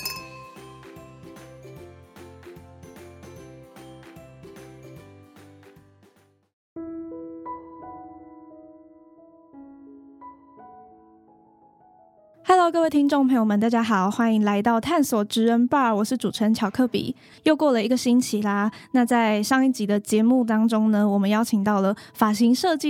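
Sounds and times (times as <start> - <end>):
glasses clinking in a toast: 0.0 - 0.8
speech: 12.6 - 22.8.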